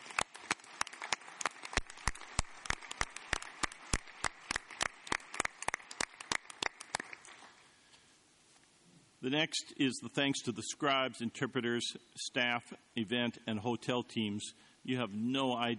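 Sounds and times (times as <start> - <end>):
scattered audience applause: 0.0 - 7.6
speech: 9.2 - 15.7.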